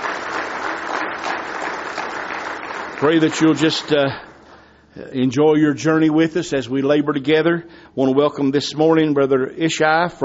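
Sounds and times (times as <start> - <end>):
church congregation applauding during a morning service: 0.0 - 4.8
speech: 3.0 - 4.3, 5.0 - 10.2.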